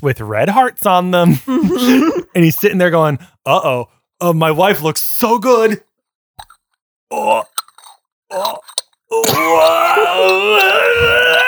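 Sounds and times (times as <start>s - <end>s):
speech: 0.0s - 5.9s, 7.1s - 7.6s, 8.3s - 11.4s
laughter: 1.3s - 2.3s
voice imitating a skyscraper creaking: 7.1s - 11.4s.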